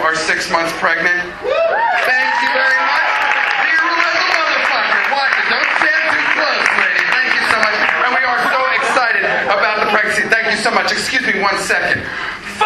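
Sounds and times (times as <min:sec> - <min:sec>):
speech: 0:00.4 - 0:02.2, 0:10.1 - 0:12.5
audience applause: 0:01.7 - 0:10.1.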